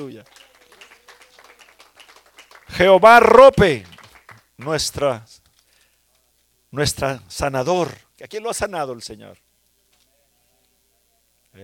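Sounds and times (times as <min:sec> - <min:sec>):
speech: 0:00.0 - 0:00.5, 0:02.7 - 0:03.9, 0:04.6 - 0:05.3, 0:06.7 - 0:09.4
crowd of people applauding together: 0:00.0 - 0:05.0.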